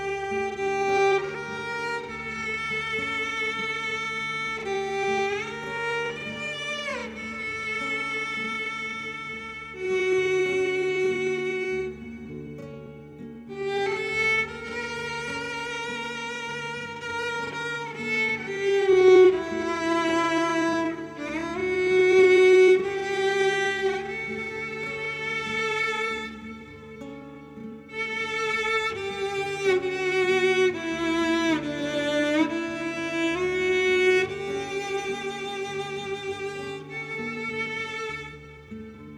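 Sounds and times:
melancholy street cello and guitar music: 0:00.0 - 0:39.1.

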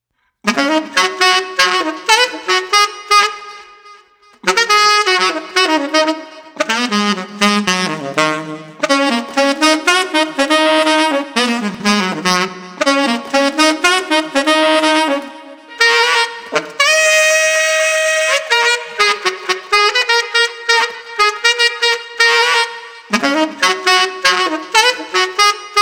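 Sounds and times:
lighthearted street saxophone music: 0:00.4 - 0:25.8.

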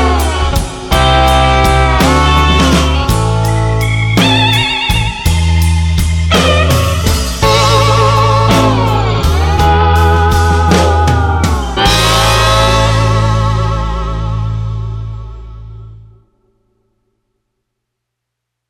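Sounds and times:
blues music without harmonica: 0:00.0 - 0:16.6.

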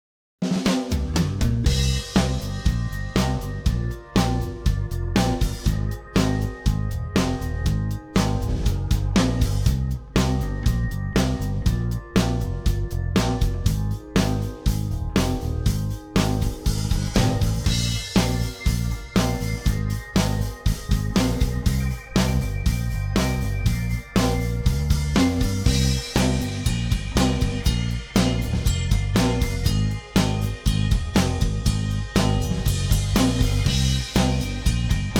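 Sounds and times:
underscore music: 0:00.5 - 0:35.1.

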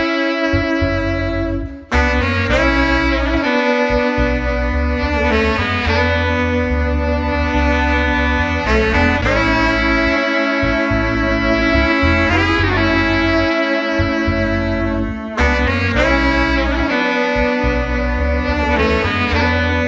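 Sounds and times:
laid-back street brass ensemble playing: 0:00.0 - 0:19.8.

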